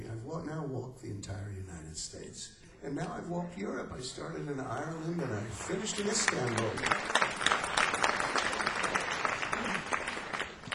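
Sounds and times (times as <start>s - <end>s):
speech: 0.3s - 7.2s
audience applause: 5.2s - 10.7s.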